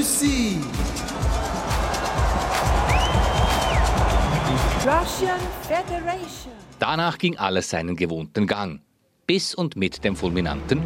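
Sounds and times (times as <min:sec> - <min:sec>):
speech: 0:00.0 - 0:01.2, 0:04.8 - 0:10.8
large stadium crowd booing: 0:01.1 - 0:05.1
shrill whistle: 0:02.9 - 0:04.8.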